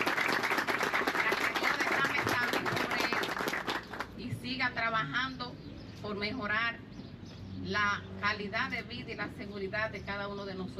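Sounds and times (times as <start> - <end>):
audience applause: 0.0 - 4.0
speech: 4.7 - 5.4, 6.0 - 6.8, 7.6 - 10.7.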